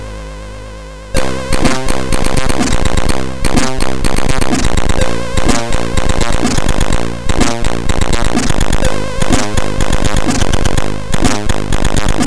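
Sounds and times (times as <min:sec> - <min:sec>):
C64 tape loader noise: 0:01.2 - 0:12.2.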